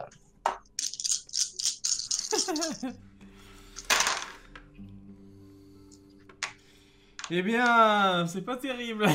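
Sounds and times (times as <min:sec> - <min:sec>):
dice being rolled: 0:00.6 - 0:02.9, 0:03.8 - 0:04.4
speech: 0:02.5 - 0:03.1, 0:07.3 - 0:09.1.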